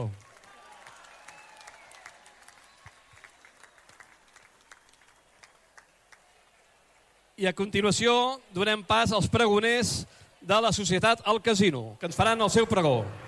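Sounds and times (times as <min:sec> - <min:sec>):
crowd clapping for the board of Sant Andreu's Festa Major: 0:00.0 - 0:07.4
speech: 0:07.4 - 0:13.2.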